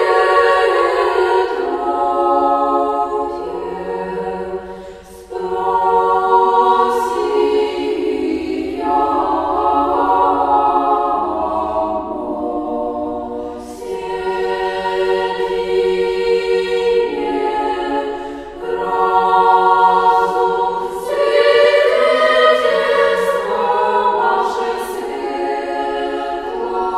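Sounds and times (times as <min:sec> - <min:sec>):
children's choir singing: 0:00.0 - 0:26.9.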